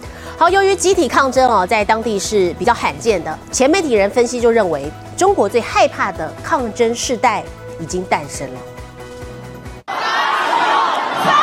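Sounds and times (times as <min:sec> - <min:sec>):
speech: 0:00.4 - 0:08.7
high school students and teachers roaring in unison in a corridor in Changsha China: 0:09.9 - 0:11.4.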